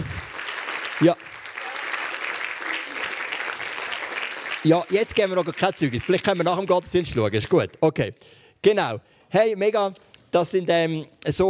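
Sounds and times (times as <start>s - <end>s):
audience applause: 0.0s - 6.8s
speech: 1.0s - 1.3s, 4.6s - 11.4s.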